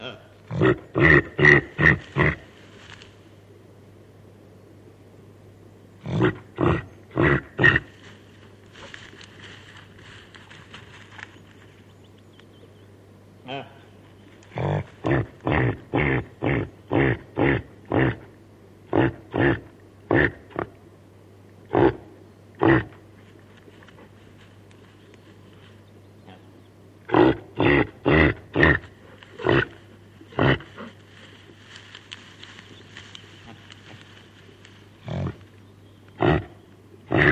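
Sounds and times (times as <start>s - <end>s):
reindeer grunting: 0.0s - 2.6s, 6.0s - 9.0s, 13.5s - 20.8s, 21.6s - 23.1s, 26.3s - 31.6s, 35.0s - 35.5s, 36.1s - 37.2s
low hum: 0.0s - 37.2s.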